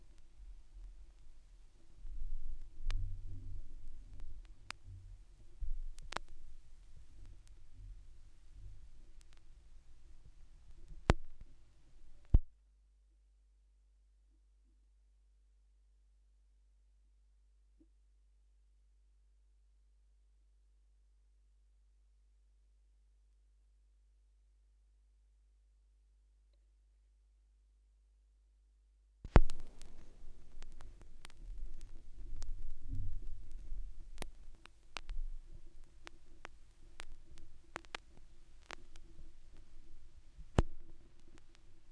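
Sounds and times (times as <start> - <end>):
vinyl record noise: 0.0 - 12.5, 29.3 - 41.8.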